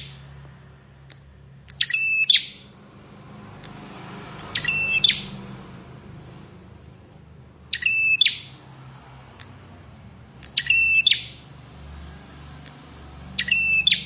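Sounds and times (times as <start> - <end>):
sharp ticks: 1.0 - 2.5, 3.6 - 5.1, 10.3 - 11.2
plain prinia buzzy rattling song: 1.1 - 2.8, 3.5 - 5.6, 7.2 - 8.6, 10.4 - 11.6, 12.6 - 14.0.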